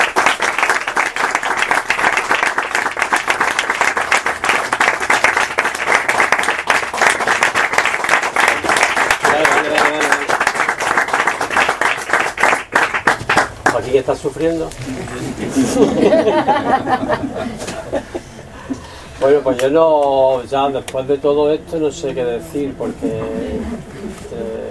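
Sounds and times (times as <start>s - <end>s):
audience applause: 0.0s - 13.9s
speech: 14.2s - 18.0s, 19.2s - 23.9s
laughter: 15.0s - 18.9s.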